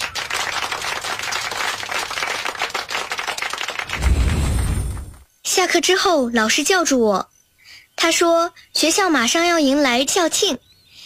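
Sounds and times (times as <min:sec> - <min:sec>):
class of students applauding: 0:00.0 - 0:04.6
speech: 0:05.6 - 0:07.3, 0:08.0 - 0:10.7.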